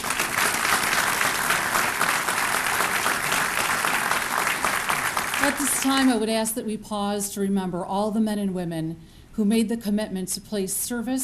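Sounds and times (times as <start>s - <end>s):
audience applause welcoming students at a civic gathering: 0.0s - 6.1s
speech: 5.5s - 11.2s.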